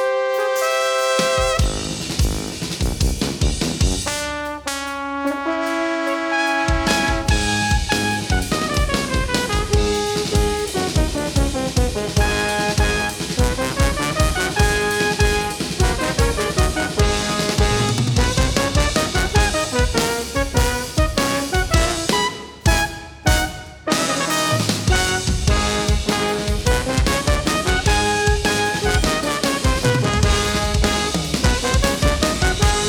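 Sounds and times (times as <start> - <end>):
brass: 0.0 - 32.8
drums: 0.0 - 32.8.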